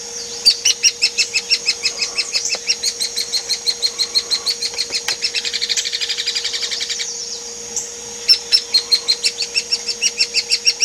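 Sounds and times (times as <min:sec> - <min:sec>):
Hairy woodpecker high calls: 0:00.0 - 0:10.8.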